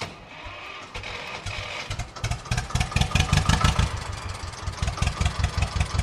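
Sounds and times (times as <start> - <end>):
old tractor engine starting and idling: 0.0 - 6.0.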